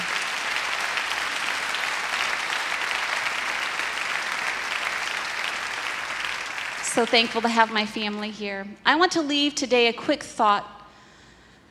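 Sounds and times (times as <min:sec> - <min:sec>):
audience hand clapping applause: 0:00.0 - 0:08.3
speech: 0:07.0 - 0:10.8.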